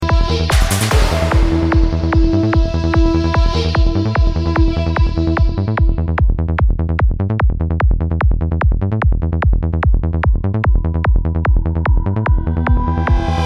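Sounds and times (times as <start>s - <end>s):
drums: 0.0s - 13.4s.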